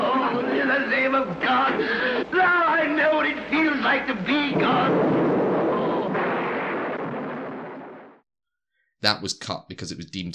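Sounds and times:
speech: 0:00.8 - 0:05.2, 0:09.0 - 0:10.3
rolling thunder sound effect from a film: 0:04.4 - 0:08.2.

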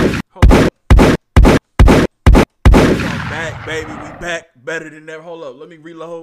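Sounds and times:
gunshot sound effects: 0:00.0 - 0:04.2
speech: 0:03.6 - 0:06.2.

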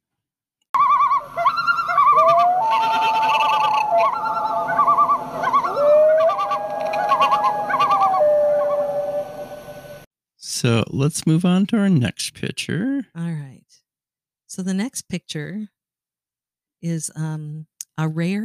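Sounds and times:
loon calls over water: 0:00.8 - 0:09.6
speech: 0:10.6 - 0:13.8, 0:14.5 - 0:15.8, 0:16.8 - 0:18.4.

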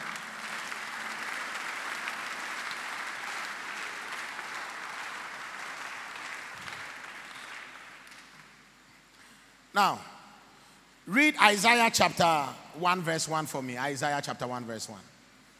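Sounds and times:
audience clapping: 0:00.0 - 0:08.6
speech: 0:09.8 - 0:10.1, 0:11.1 - 0:15.1.

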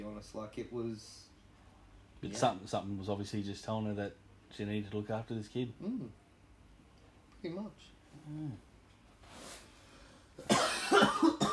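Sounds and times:
speech: 0:00.2 - 0:01.3, 0:02.2 - 0:06.2, 0:07.4 - 0:08.7
person coughing hard: 0:10.4 - 0:11.5.

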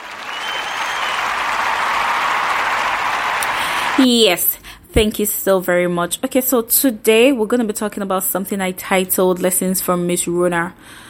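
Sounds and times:
round of applause: 0:00.0 - 0:04.1
speech: 0:04.0 - 0:11.0.

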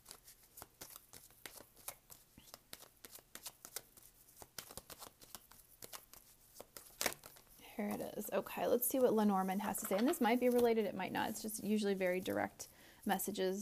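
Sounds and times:
tarot cards being shuffled and drawn: 0:00.0 - 0:08.0, 0:09.7 - 0:10.9
speech: 0:07.8 - 0:13.6.

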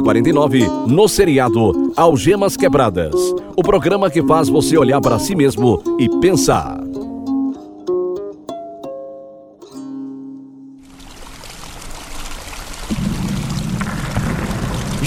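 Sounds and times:
speech: 0:00.0 - 0:06.8
heavy rain falling: 0:10.8 - 0:15.0.

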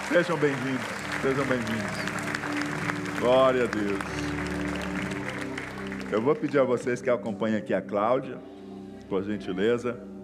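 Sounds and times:
audience applause: 0:00.0 - 0:07.0
speech: 0:00.1 - 0:02.2, 0:03.2 - 0:04.3, 0:06.1 - 0:08.5, 0:09.1 - 0:10.1.

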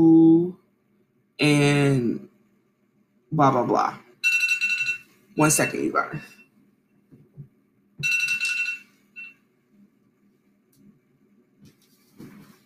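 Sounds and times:
speech: 0:01.4 - 0:02.2, 0:03.3 - 0:04.0, 0:05.4 - 0:06.4
phone alarm ringing: 0:04.2 - 0:06.5, 0:08.0 - 0:09.4.

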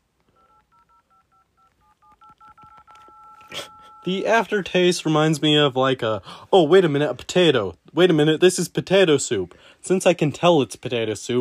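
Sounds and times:
phone keypad tones as a number is dialed: 0:00.3 - 0:04.2
speech: 0:03.5 - 0:11.3.

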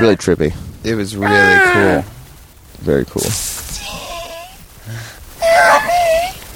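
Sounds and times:
speech: 0:00.0 - 0:02.2, 0:02.8 - 0:04.0
voice imitating a burning Joshua tree squealing: 0:01.2 - 0:02.1, 0:03.6 - 0:04.7, 0:05.4 - 0:06.5.

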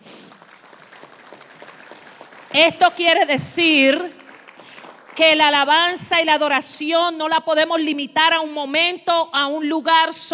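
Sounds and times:
audience applause: 0:00.0 - 0:05.8
speech: 0:02.6 - 0:04.2, 0:05.2 - 0:10.3.

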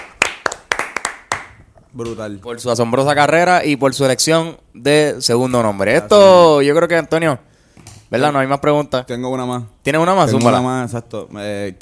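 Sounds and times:
clapping: 0:00.0 - 0:02.2
speech: 0:02.0 - 0:07.5, 0:08.1 - 0:11.8.

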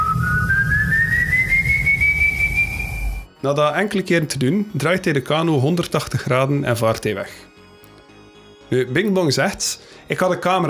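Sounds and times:
whistled tone: 0:00.0 - 0:03.3
speech: 0:03.4 - 0:07.5, 0:08.7 - 0:10.6.

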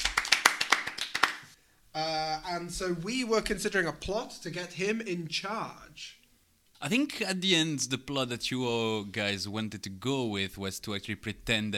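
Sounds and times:
hands clapping: 0:00.0 - 0:01.6
speech: 0:02.0 - 0:06.2, 0:06.8 - 0:11.7.

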